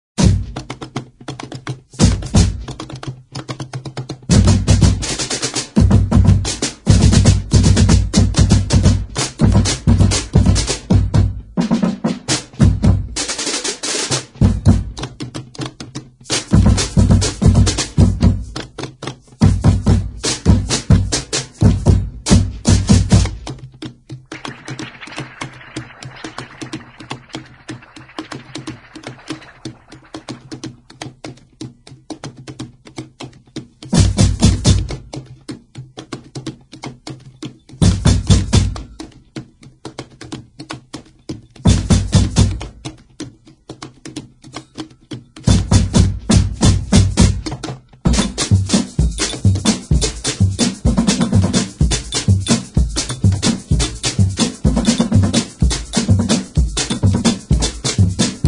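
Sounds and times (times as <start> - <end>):
instrumental samba: 0.2 - 58.4.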